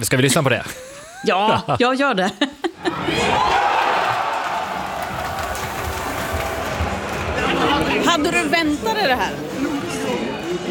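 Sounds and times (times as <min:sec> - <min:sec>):
speech: 0:00.0 - 0:03.6, 0:08.2 - 0:09.6
crowd cheering in a restaurant: 0:02.8 - 0:10.6.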